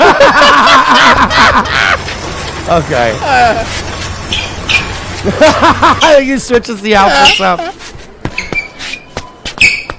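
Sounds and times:
laughter: 0.0s - 2.2s, 5.2s - 6.4s
speech: 2.7s - 4.4s, 5.2s - 7.8s
sneakers squeaking on a basketball court: 4.1s - 5.2s, 7.0s - 9.9s.

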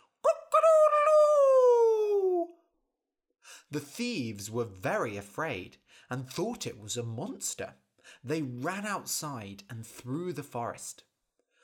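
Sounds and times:
voice imitating a crowing chicken: 0.3s - 2.5s
speech: 3.7s - 11.1s.

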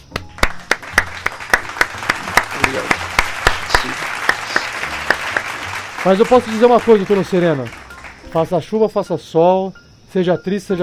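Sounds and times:
applause: 0.0s - 8.6s
speech: 6.0s - 10.8s.

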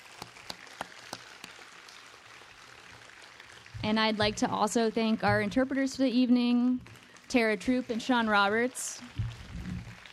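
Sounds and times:
sparse hand claps: 0.1s - 1.6s
speech: 3.8s - 9.2s.

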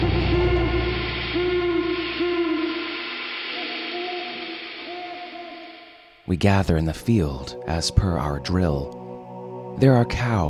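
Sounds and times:
alarm hooters blaring: 0.0s - 6.2s
speech: 6.3s - 9.0s, 9.8s - 10.4s.

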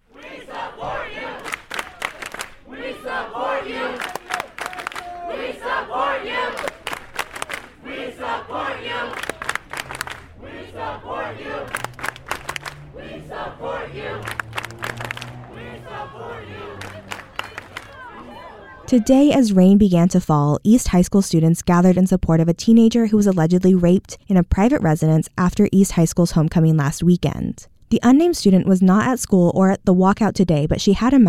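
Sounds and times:
crowd of young voices chanting: 0.0s - 19.4s
people yelling: 0.1s - 19.3s
speech: 18.9s - 31.2s.

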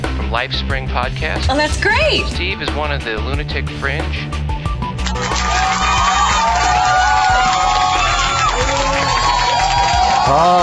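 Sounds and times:
speech: 0.3s - 4.5s, 10.3s - 10.6s
live audience cheering with whoops and shouts: 5.1s - 10.6s.

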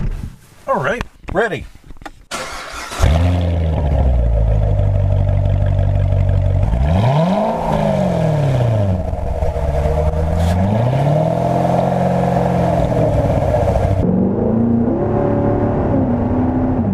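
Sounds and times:
speech: 0.7s - 1.8s
sports car engine revving and accelerating: 2.9s - 16.9s.

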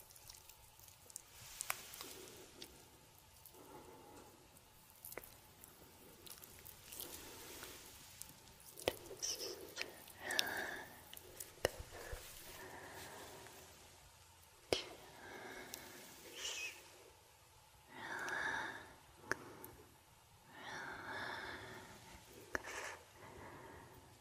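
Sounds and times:
soft rubbing and brushing strokes of a scalp and face massage: 0.0s - 14.1s
faint steady hum: 0.0s - 24.2s.

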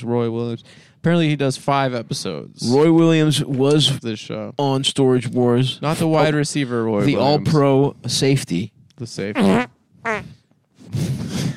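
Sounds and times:
speech: 0.0s - 11.0s
fart on microphone: 9.4s - 10.4s.

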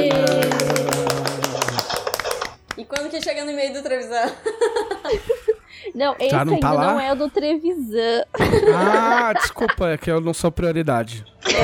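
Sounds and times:
laughter: 0.0s - 2.6s, 4.2s - 7.5s, 8.3s - 10.0s
clapping: 0.0s - 3.4s
speech: 3.2s - 5.4s, 6.0s - 11.6s.

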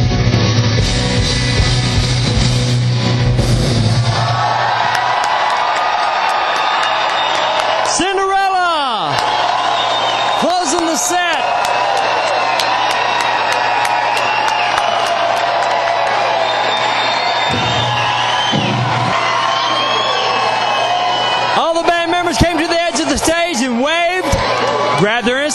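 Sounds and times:
concert crowd cheering and applauding: 0.0s - 25.5s
whoops and yells: 4.1s - 21.6s
whistles: 6.6s - 7.7s, 9.2s - 10.6s, 14.1s - 15.2s, 16.3s - 21.6s.

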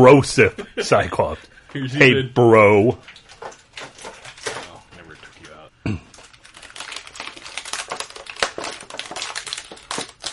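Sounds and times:
speech: 0.0s - 3.2s
crunchy plastic packaging being handled: 3.0s - 10.3s.

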